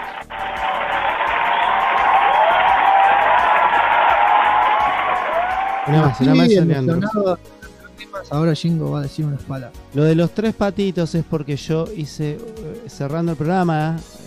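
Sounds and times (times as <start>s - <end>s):
crowd applause and cheering sound effect: 0.0s - 6.9s
speech: 5.9s - 7.6s, 8.3s - 14.2s.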